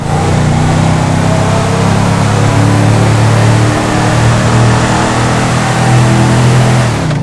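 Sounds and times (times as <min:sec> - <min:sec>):
vehicles: 0:00.0 - 0:07.2.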